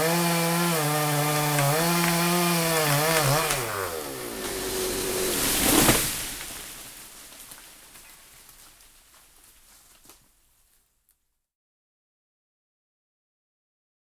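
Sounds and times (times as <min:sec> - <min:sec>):
chainsaw: 0:00.0 - 0:08.8.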